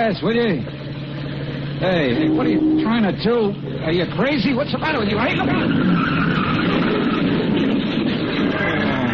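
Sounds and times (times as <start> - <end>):
speech: 0.0 - 0.8, 1.8 - 6.4
car engine roaring: 0.7 - 9.0
car tires screeching in a skid: 1.8 - 9.0.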